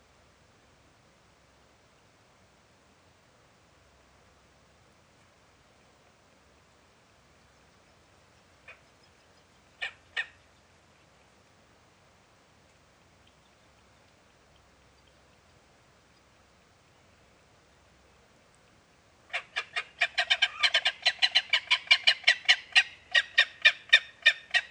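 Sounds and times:
gyrfalcon giving harsh rasping call notes: 19.3 - 24.6.

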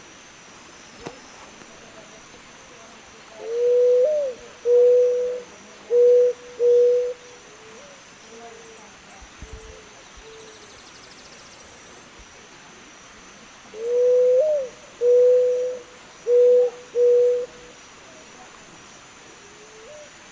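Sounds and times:
Zenaida dove giving low even coos: 3.4 - 8.0, 13.7 - 17.7, 19.6 - 20.2.

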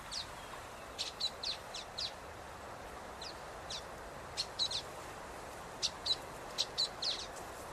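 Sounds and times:
common waxbill calling: 0.1 - 2.2, 3.2 - 4.9, 5.8 - 7.6.

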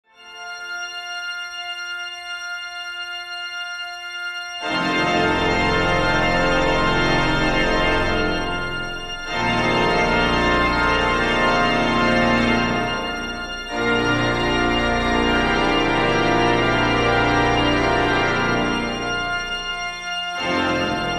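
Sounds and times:
organ: 0.2 - 21.1.

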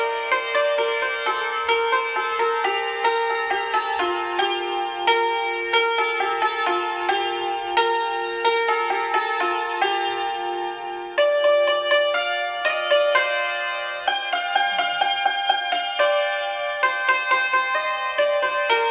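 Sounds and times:
santur playing: 0.0 - 18.8.

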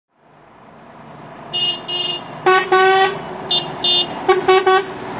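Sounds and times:
Volvo 500 horn: 1.5 - 5.0.

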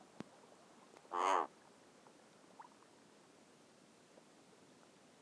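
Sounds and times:
razorbill uttering rasping croaks: 1.1 - 1.5.

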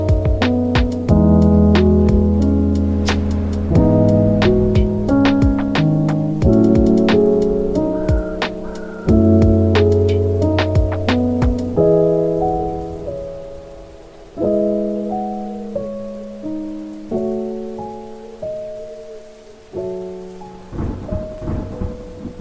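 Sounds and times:
thunder: 0.0 - 11.8, 20.4 - 22.3
music: 0.0 - 22.3
rain: 0.0 - 22.3.

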